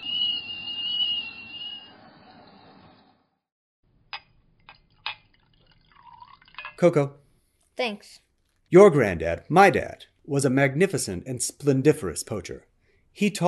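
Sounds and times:
kettle whistling shrilly: 0:00.0 - 0:03.2
soft pouring sounds: 0:04.4 - 0:07.1
kettle water rumbling boil: 0:04.6 - 0:07.0
speech: 0:06.8 - 0:07.2, 0:07.8 - 0:13.4.

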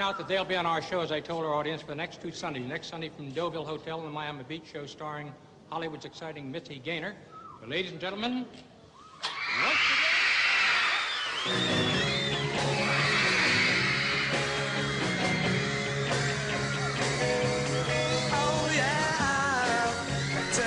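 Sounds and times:
speech: 0:00.0 - 0:09.7, 0:11.4 - 0:11.8
studio audience screaming: 0:09.1 - 0:20.6.

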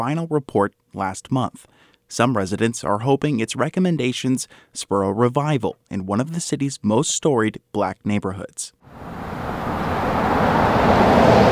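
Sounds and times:
speech: 0:00.0 - 0:09.3
cars whizzing past on a downtown city street: 0:08.8 - 0:11.5.

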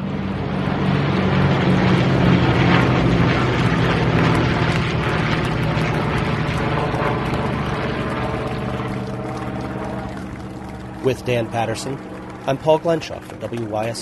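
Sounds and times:
four fighter planes flying over in missing man formation: 0:00.0 - 0:14.0
speech: 0:11.1 - 0:14.0.

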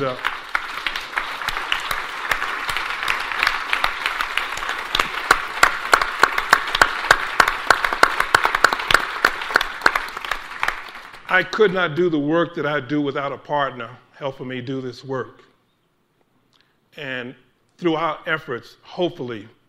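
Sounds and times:
speech: 0:00.0 - 0:00.4, 0:11.3 - 0:15.5, 0:17.0 - 0:19.6
audience applause: 0:00.0 - 0:11.3.

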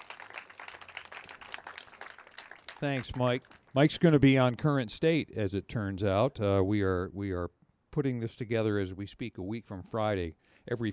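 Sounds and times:
audience applause for a musician at a live evening show: 0:00.0 - 0:03.7
speech: 0:02.8 - 0:10.9.

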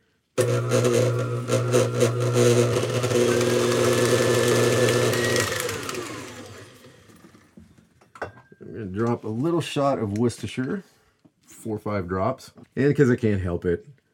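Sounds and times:
stand mixer with paddle attachment whipping farmer's cheese: 0:00.4 - 0:07.4
speech: 0:09.8 - 0:10.9, 0:11.6 - 0:14.0.

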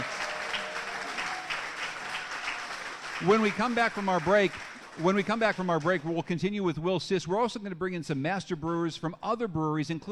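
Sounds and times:
crowd applauding: 0:00.0 - 0:06.4
speech: 0:03.2 - 0:10.1.

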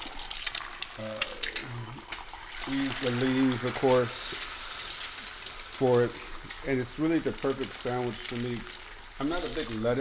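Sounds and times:
egg frying in a pan for a breakfast sandwich: 0:00.0 - 0:10.0
speech: 0:01.0 - 0:01.3, 0:02.7 - 0:04.4, 0:05.8 - 0:10.0.

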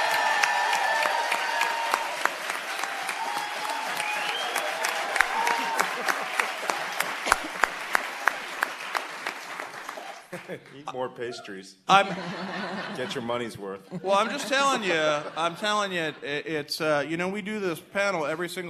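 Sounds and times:
live audience applauding a guest on a panel program: 0:00.0 - 0:10.9
laughter: 0:05.1 - 0:08.0, 0:10.4 - 0:16.9
speech: 0:10.5 - 0:18.6.

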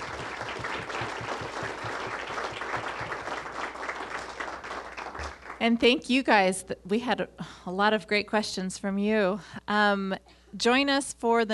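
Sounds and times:
audience round of applause: 0:00.0 - 0:05.6
speech: 0:05.6 - 0:11.5.

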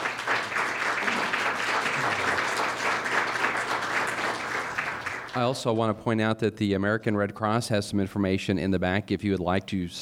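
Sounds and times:
audience applause: 0:00.0 - 0:05.6
speech: 0:05.4 - 0:10.0.

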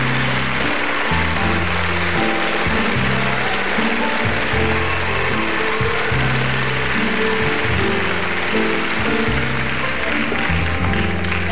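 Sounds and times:
audience applause: 0:00.0 - 0:11.4.

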